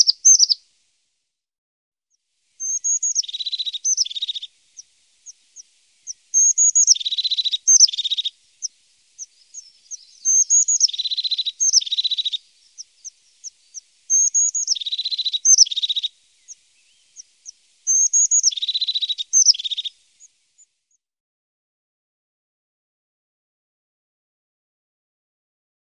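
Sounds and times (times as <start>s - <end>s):
crested tit making high thin notes and buzzy trills: 0.0s - 0.6s, 2.6s - 20.7s.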